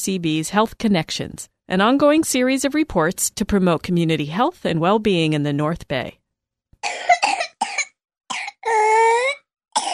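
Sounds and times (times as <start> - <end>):
speech: 0.0 - 6.2
22-month-old baby with pertussis hacking coughs: 6.8 - 9.9.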